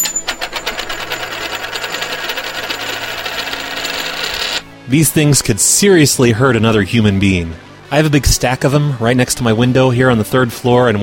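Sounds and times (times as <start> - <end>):
coin dropping onto a hard desk: 0.0 - 4.7
speech: 4.9 - 11.0.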